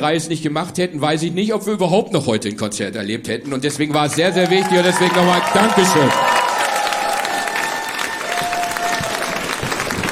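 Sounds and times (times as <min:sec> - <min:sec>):
speech: 0:00.0 - 0:06.4
audience applause: 0:03.9 - 0:10.1.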